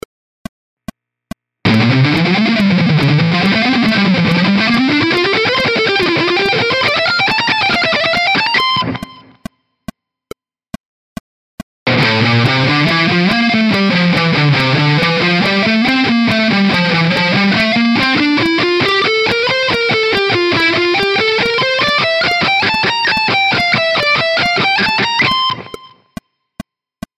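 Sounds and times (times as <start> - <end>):
ascending guitar shred: 1.6 - 9.4, 11.9 - 25.9.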